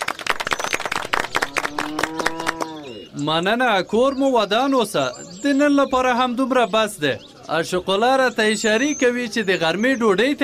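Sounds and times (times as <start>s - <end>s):
villagers clapping at a gathering about a new cultural centre: 0.0s - 3.0s
speech: 3.2s - 10.4s.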